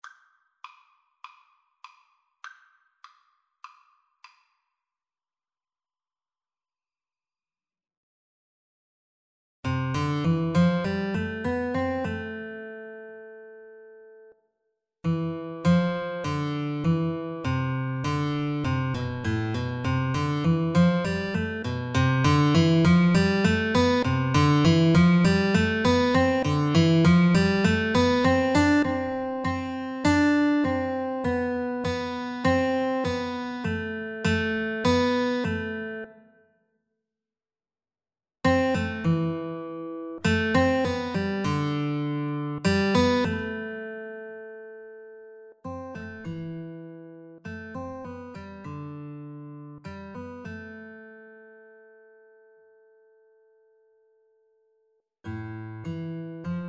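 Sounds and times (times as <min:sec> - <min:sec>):
guitar duet: 0:09.7 - 0:14.3, 0:15.0 - 0:36.2, 0:38.5 - 0:53.6, 0:55.2 - 0:56.6.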